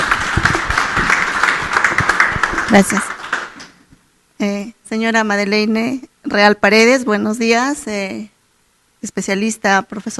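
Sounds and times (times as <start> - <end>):
audience applause: 0.0 - 3.8
speech: 2.7 - 3.1, 4.4 - 8.3, 9.0 - 10.1.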